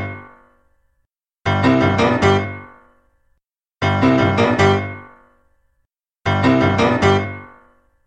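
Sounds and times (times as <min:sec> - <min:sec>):
piano riff: 0:01.5 - 0:02.8, 0:03.8 - 0:05.2, 0:06.2 - 0:07.6.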